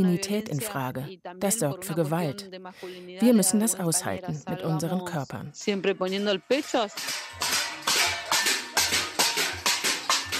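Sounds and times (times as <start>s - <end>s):
speech: 0.0s - 7.6s
cacerolazo protesters banging on pots and pans: 6.0s - 10.3s.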